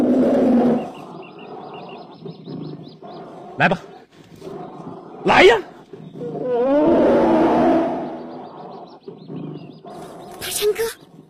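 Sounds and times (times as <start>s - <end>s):
black bear roaring: 0.0s - 11.2s
quick high bird chirps: 0.6s - 6.7s, 7.5s - 11.2s
speech: 3.6s - 3.9s, 5.2s - 5.7s.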